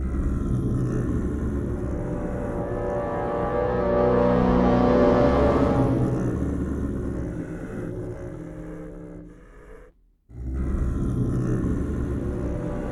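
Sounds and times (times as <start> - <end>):
disturbing ambience: 0.2 - 7.3, 11.4 - 12.8.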